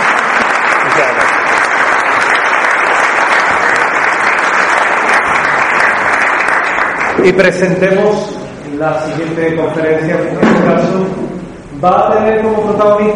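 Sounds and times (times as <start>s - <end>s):
applause: 0.0s - 7.6s
speech: 1.0s - 1.2s, 7.2s - 13.1s.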